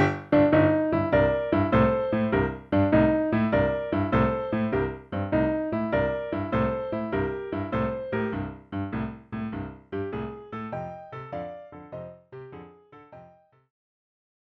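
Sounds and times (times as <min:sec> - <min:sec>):
ninth chord boogie blues exercise: 0:00.0 - 0:11.6.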